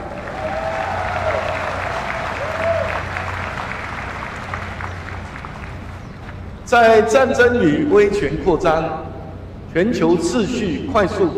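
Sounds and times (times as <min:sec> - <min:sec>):
warm applause from audience: 0:00.0 - 0:06.2
speech: 0:06.7 - 0:09.1, 0:09.7 - 0:11.3.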